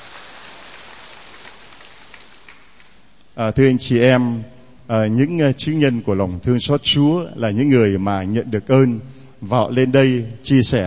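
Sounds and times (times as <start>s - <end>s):
audience applause: 0.0s - 2.9s
speech: 3.4s - 10.8s.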